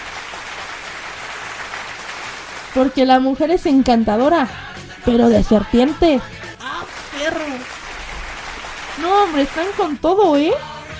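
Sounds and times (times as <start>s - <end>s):
audience clapping: 0.0s - 3.2s, 6.6s - 10.4s
speech: 2.8s - 6.4s, 9.0s - 10.7s.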